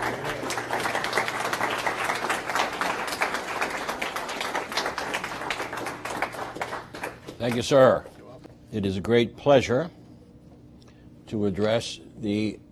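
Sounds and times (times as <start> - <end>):
audience applause: 0.0 - 7.7
speech: 7.4 - 8.1, 8.7 - 10.0, 11.3 - 12.6.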